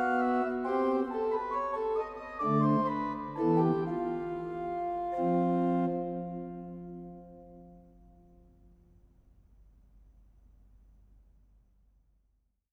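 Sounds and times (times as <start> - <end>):
organ: 0.0 - 7.5.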